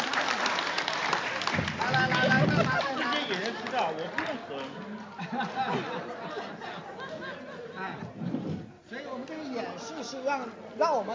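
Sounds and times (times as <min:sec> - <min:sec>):
group applauding: 0:00.0 - 0:05.9
laughter: 0:01.8 - 0:08.6
speech: 0:10.3 - 0:11.1.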